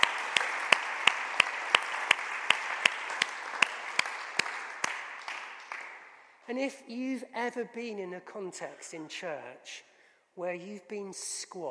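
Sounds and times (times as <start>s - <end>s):
audience applause: 0.0s - 6.1s
speech: 6.5s - 11.6s.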